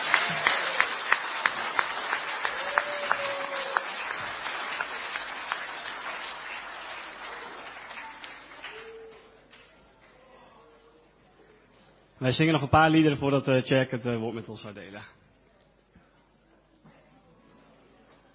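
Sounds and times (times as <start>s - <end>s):
audience applause: 0.0s - 9.7s
speech: 12.2s - 15.2s.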